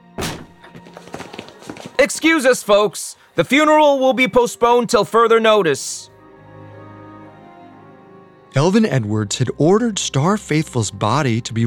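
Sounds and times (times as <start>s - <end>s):
heavy chapel doors bursting open: 0.2s - 1.0s
knocks and shuffling: 0.4s - 2.3s
speech: 2.0s - 6.1s, 8.6s - 11.6s.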